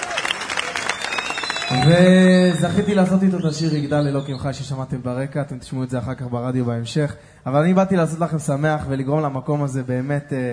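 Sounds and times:
audience clapping: 0.0 - 3.5
crowd cheering: 0.0 - 4.2
speech: 1.7 - 10.5.

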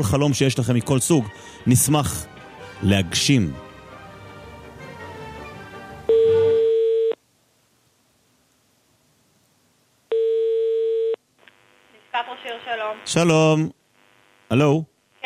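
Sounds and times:
speech: 0.0 - 3.6, 13.1 - 13.8, 14.5 - 15.2
telephone ringback tone from a call to the Netanya municipality: 6.1 - 7.2, 10.1 - 11.2.

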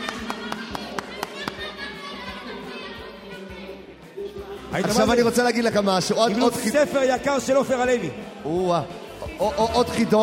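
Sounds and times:
audience clapping: 0.0 - 1.8
speech: 4.7 - 10.2.

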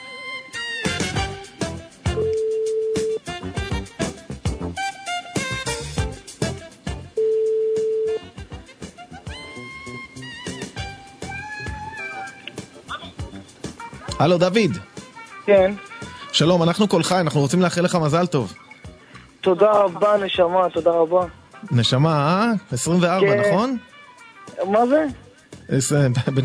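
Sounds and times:
busy music: 0.0 - 26.4
telephone ringback tones as a call is placed: 2.2 - 3.2, 7.2 - 8.2
speech: 14.2 - 14.9, 15.5 - 18.6, 19.4 - 23.9, 24.5 - 26.4.

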